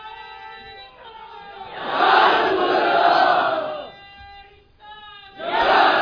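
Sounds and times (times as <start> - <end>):
large crowd chanting a slogan: 1.4 - 4.0, 5.4 - 6.0.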